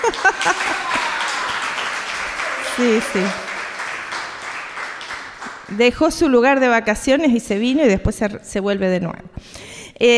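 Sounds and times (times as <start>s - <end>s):
laughter: 0.0s - 4.4s
crowd applauding: 0.0s - 5.9s
speech: 2.8s - 3.4s, 5.7s - 10.1s.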